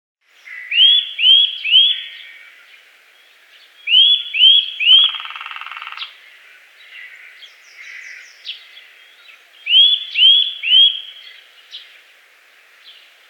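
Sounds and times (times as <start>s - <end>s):
Eurasian nuthatch calling with short whistled notes: 0.5s - 2.6s, 3.8s - 6.2s, 9.2s - 11.4s.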